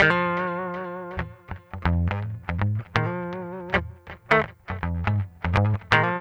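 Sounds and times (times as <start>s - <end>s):
guitar: 0.0s - 6.1s.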